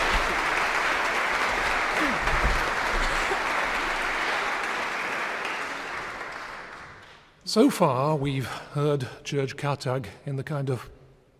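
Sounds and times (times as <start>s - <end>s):
applause: 0.0s - 7.4s
speech: 7.6s - 11.0s.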